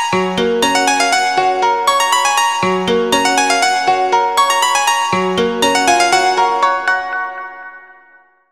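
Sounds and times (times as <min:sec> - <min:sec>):
phone ringtone: 0:00.2 - 0:08.1.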